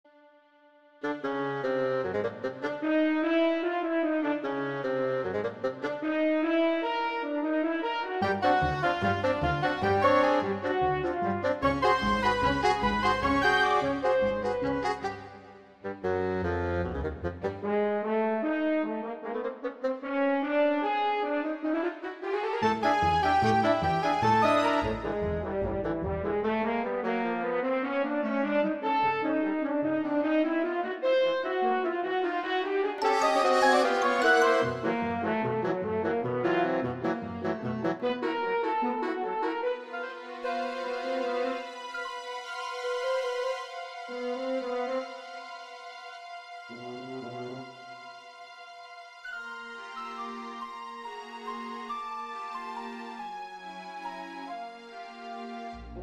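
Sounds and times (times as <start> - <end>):
orchestral music: 1.1 - 56.0.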